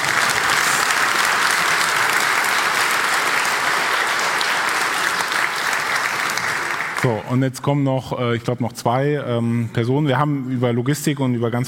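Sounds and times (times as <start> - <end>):
applause: 0.0 - 7.3
speech: 7.0 - 11.6.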